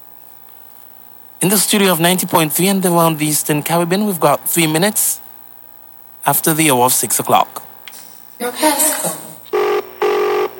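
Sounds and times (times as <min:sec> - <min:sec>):
speech: 0:01.4 - 0:05.2, 0:06.3 - 0:07.6, 0:08.4 - 0:09.2
telephone ringing: 0:09.5 - 0:10.5.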